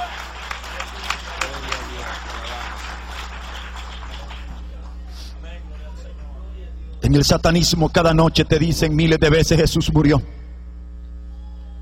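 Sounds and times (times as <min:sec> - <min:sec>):
church audience applause: 0:00.0 - 0:05.1
speech: 0:07.1 - 0:10.4.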